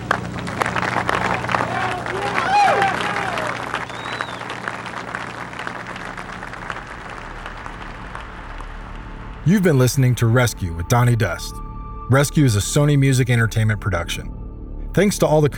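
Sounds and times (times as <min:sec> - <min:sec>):
audience applause: 0:00.0 - 0:09.3
speech: 0:09.5 - 0:15.5.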